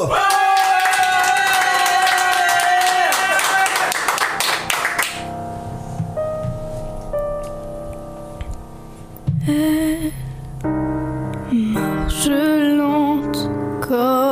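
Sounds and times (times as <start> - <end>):
audience clapping: 0.0 - 5.3
song music: 3.9 - 14.2.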